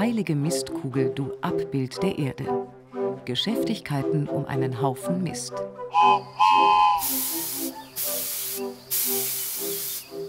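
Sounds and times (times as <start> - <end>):
speech: 0.0 - 7.3
small model steam locomotive hissing steam: 6.0 - 10.2.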